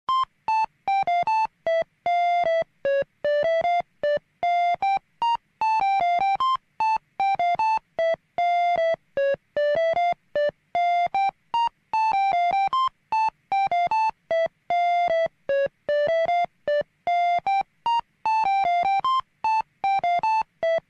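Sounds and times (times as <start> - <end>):
alarm ringtone: 0.1 - 20.8.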